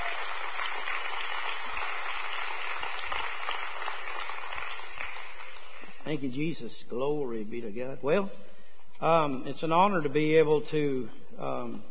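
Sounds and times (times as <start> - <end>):
audience clapping: 0.0 - 6.2
speech: 6.1 - 11.9.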